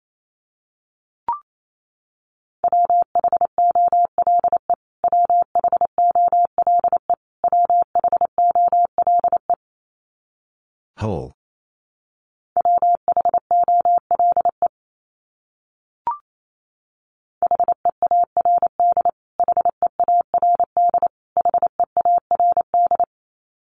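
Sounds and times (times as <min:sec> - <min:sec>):
Morse code beeps: 0:02.7 - 0:09.5, 0:12.6 - 0:14.7, 0:17.4 - 0:23.1.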